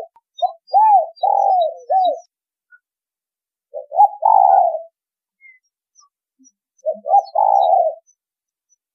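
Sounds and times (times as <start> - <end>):
spotted dove cooing: 0.0 - 2.3, 3.7 - 5.0, 6.8 - 8.2.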